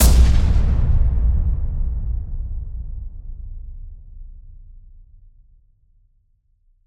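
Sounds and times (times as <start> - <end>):
explosion: 0.0 - 4.0.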